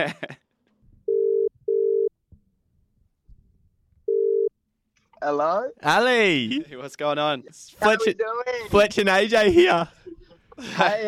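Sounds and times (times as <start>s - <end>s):
speech: 0.0s - 0.4s, 5.2s - 10.0s, 10.6s - 11.0s
laughter: 0.0s - 0.5s, 9.3s - 11.0s
phone call ringing out: 1.1s - 2.1s, 4.1s - 4.5s.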